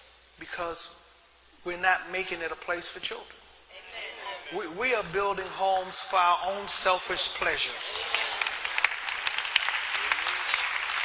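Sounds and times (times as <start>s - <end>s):
speech: 0.4s - 1.0s, 1.6s - 3.8s, 4.5s - 8.3s
audience clapping: 7.3s - 11.0s.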